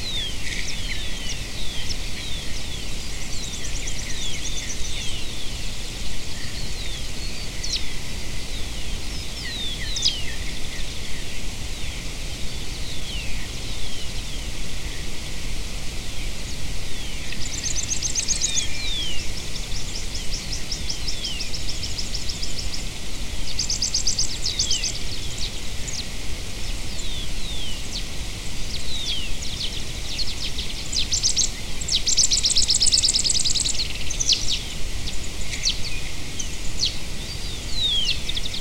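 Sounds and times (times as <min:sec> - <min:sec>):
background hiss: 0:00.0 - 0:38.5
birds chirping and trilling: 0:00.0 - 0:38.5.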